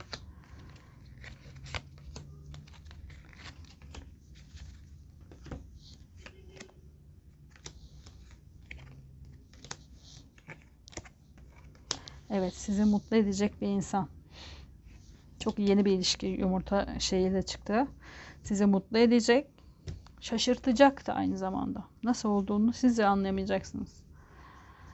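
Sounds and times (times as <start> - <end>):
tarot cards handled and drawn during a tarot reading: 0.0 - 13.6
speech: 12.4 - 14.2, 15.4 - 19.5, 20.2 - 24.0.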